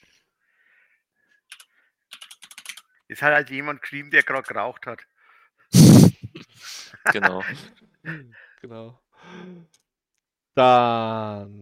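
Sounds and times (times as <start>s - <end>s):
typing on a computer keyboard to search Google: 1.5s - 2.9s
speech: 3.1s - 5.1s, 7.1s - 9.8s, 10.6s - 11.5s.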